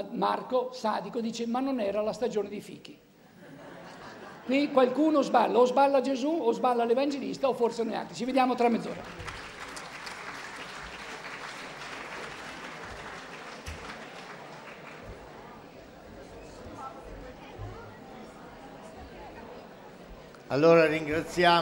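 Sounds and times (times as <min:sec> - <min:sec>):
speech: 0:00.0 - 0:03.1, 0:04.5 - 0:09.4, 0:20.5 - 0:21.6
laughter: 0:03.2 - 0:05.1
audience applause: 0:08.8 - 0:16.2
faint murmuring voices: 0:13.6 - 0:20.5.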